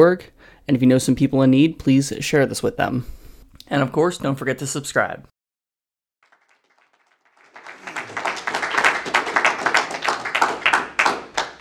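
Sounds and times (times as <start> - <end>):
speech: 0.0 - 5.3
audience clapping: 6.2 - 11.5.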